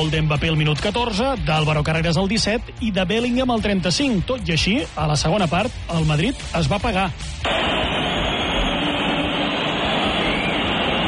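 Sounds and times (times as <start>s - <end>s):
speech: 0.0s - 7.7s
Bernabéu stadium crowd whistling at home team: 7.5s - 11.0s.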